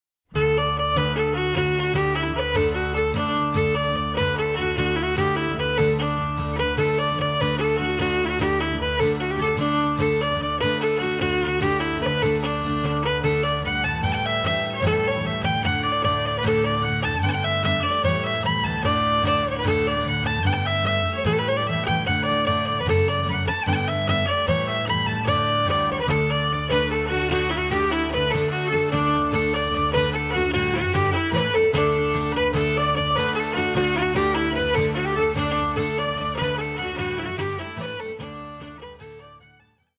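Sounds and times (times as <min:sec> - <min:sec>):
polka music: 0:00.4 - 0:39.4.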